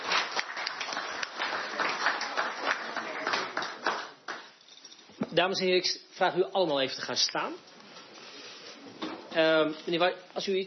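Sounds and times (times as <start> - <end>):
applause: 0.0 - 4.8
speech: 5.4 - 7.7, 9.3 - 10.6.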